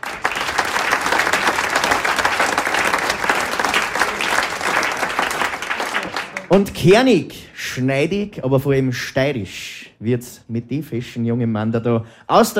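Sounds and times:
audience applause: 0.0 - 6.7
speech: 6.5 - 12.5.

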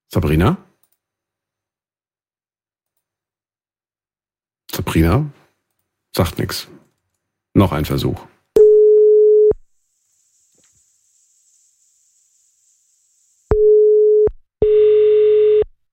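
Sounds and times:
speech: 0.1 - 0.7, 4.9 - 5.4, 6.1 - 6.8, 7.6 - 8.3
telephone line ringing tone: 8.6 - 9.6, 13.5 - 15.7.

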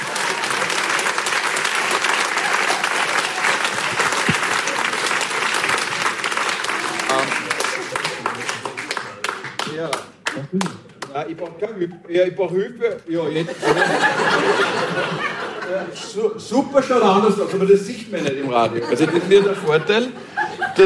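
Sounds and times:
audience applause: 0.0 - 10.9
speech: 9.9 - 20.8
laughter: 13.3 - 16.4, 17.5 - 20.8.

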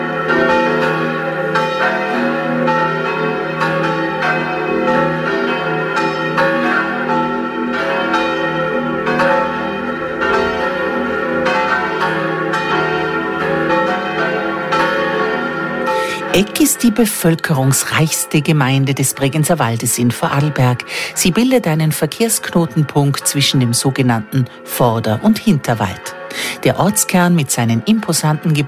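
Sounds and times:
church bells of the Church of St. Nicholas in Egg, Vorarlberg, ringing at noon: 0.0 - 28.6
speech: 16.4 - 28.6.

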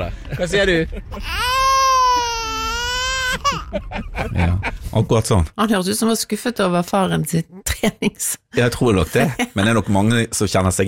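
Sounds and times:
speech: 0.0 - 1.6, 3.7 - 10.8
laughter: 0.0 - 4.9, 9.0 - 10.1
baby whimpering and crying: 1.1 - 3.8.

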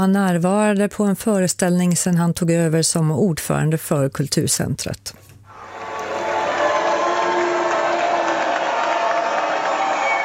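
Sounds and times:
speech: 0.0 - 5.3
audience booing: 5.5 - 10.2
scattered shouts: 5.6 - 10.2.

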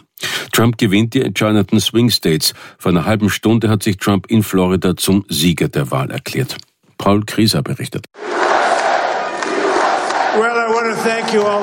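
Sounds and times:
speech: 0.6 - 8.3, 10.4 - 11.6
crowd cheering as Donald Trump takes the stage in Florida: 8.2 - 11.6.

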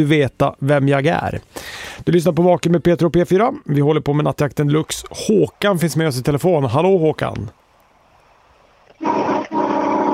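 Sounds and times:
speech: 0.0 - 7.6
brassy truck horn blasts: 9.0 - 10.1.

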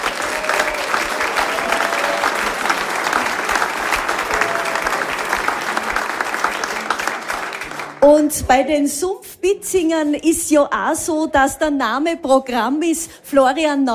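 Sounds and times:
whistles and cheers: 0.0 - 5.4
audience applause: 0.0 - 8.0
crowd murmur: 0.0 - 8.0
speech: 8.0 - 13.9.

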